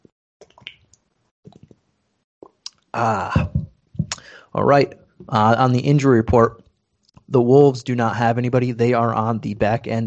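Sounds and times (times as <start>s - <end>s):
sipping water: 2.4s - 4.4s
speech: 3.0s - 3.6s, 4.5s - 6.6s, 7.3s - 10.0s
breathy sighing exhale: 4.1s - 4.6s.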